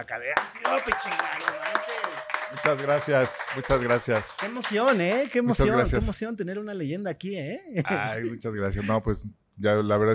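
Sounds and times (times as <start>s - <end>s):
speech: 0.0s - 10.1s
audience applause for guest: 0.4s - 5.8s
laughter: 7.8s - 9.0s.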